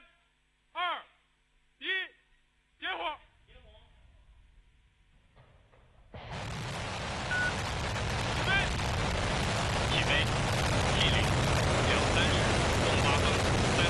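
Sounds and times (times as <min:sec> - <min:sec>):
Shenzhou 23 spacecraft rocket launch roar: 0:06.1 - 0:13.8.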